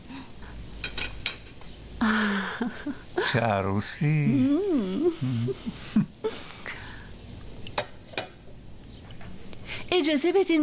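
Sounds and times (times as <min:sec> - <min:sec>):
dishes and cutlery clinking while clearing the table after a meal: 0:00.8 - 0:01.6
speech: 0:02.0 - 0:06.5, 0:10.0 - 0:10.6.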